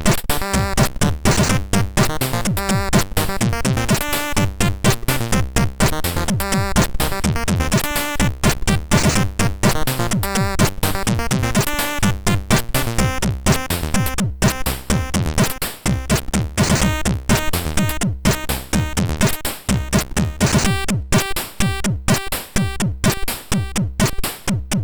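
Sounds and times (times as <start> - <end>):
MOS6581R3 SID chip synth music: 0.0 - 24.2.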